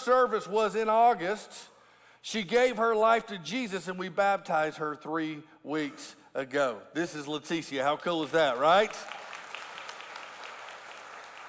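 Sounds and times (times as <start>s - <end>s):
speech: 0.0s - 9.2s
audience clapping: 8.5s - 11.4s.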